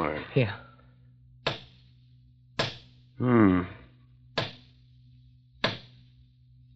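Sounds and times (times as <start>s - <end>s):
low steady hum: 0.0s - 6.7s
hammer tapping on hollow-sounding stone: 1.4s - 1.8s, 2.6s - 2.9s, 4.4s - 4.6s.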